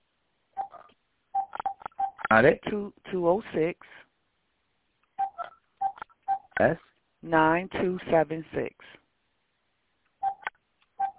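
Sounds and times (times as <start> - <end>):
telephone dialing tones from a house phone on speakerphone: 1.4 - 2.3, 5.2 - 6.6, 10.2 - 11.1
speech: 2.3 - 4.0, 6.6 - 9.0.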